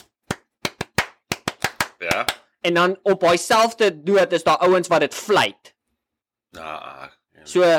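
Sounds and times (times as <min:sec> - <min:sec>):
rhythmic hand clapping of a school cheer: 0:00.0 - 0:02.5
speech: 0:02.0 - 0:05.7, 0:06.5 - 0:07.7.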